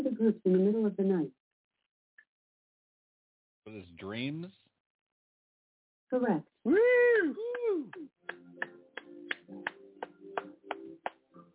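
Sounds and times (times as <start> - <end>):
speech: 0.0 - 1.4, 3.7 - 4.7, 6.1 - 8.8
hand clapping: 7.4 - 11.2.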